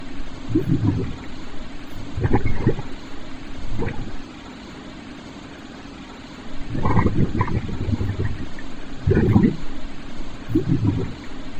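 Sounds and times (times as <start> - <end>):
bubbling: 0.5 - 4.3, 6.6 - 11.5.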